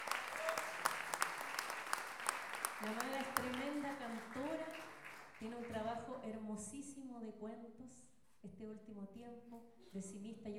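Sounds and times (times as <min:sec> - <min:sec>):
faint audience applause at a feminist poetry gathering: 0:00.0 - 0:06.0
speech: 0:02.8 - 0:04.8, 0:05.4 - 0:10.5.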